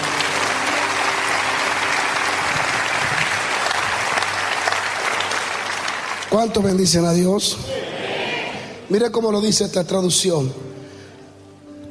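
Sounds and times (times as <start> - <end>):
audience applause: 0.0 - 6.8
speech: 6.4 - 7.9, 8.9 - 10.8.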